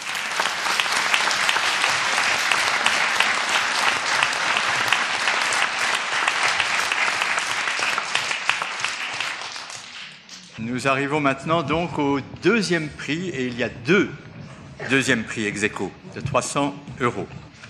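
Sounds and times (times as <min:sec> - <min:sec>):
audience applause: 0:00.0 - 0:10.5
speech: 0:10.6 - 0:14.2, 0:14.8 - 0:17.4.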